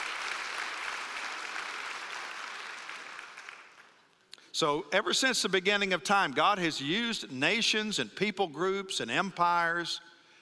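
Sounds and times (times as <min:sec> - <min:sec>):
audience clapping: 0:00.0 - 0:04.2
speech: 0:04.6 - 0:10.1.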